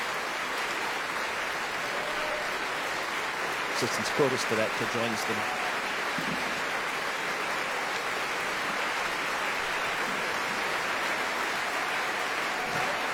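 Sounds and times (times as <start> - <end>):
opera house audience applause at curtain call: 0.0 - 13.1
speech: 3.8 - 6.3.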